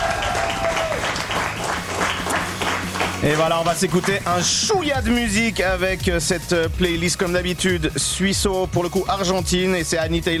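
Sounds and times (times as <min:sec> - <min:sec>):
applause: 0:00.0 - 0:04.6
speech: 0:03.2 - 0:10.3.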